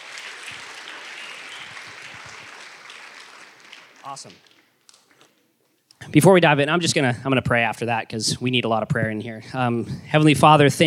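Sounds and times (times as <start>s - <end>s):
audience applause: 0.0s - 4.7s
speech: 4.0s - 4.5s, 6.1s - 10.8s.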